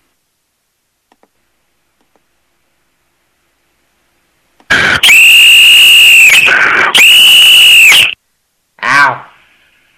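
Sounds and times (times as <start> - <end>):
loud shrill whistle: 4.7 - 8.2.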